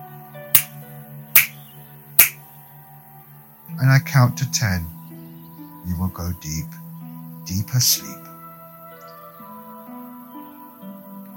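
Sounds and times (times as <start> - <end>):
finger snaps: 0.6 - 0.8, 1.4 - 1.6, 2.2 - 2.5
speech: 3.8 - 5.0, 5.9 - 6.8, 7.5 - 8.3.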